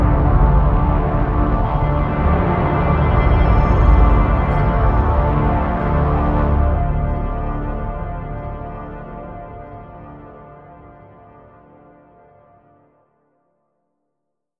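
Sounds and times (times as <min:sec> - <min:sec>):
contemporary cinematic action music with desert voice: 0:00.0 - 0:10.2.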